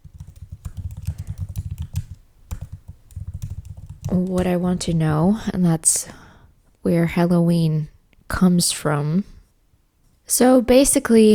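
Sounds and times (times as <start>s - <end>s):
rapid typing on a computer keyboard: 0.0s - 5.2s
speech: 4.1s - 6.2s, 6.8s - 9.3s, 10.3s - 11.3s.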